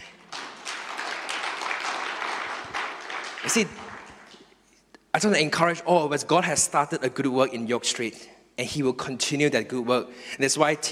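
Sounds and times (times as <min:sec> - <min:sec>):
audience clapping: 0:00.0 - 0:04.6
speech: 0:03.4 - 0:03.8, 0:05.2 - 0:10.8.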